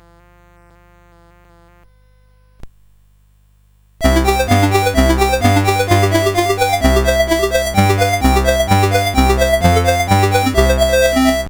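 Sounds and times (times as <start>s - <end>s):
music duet on CSG8580R5: 4.0s - 11.4s.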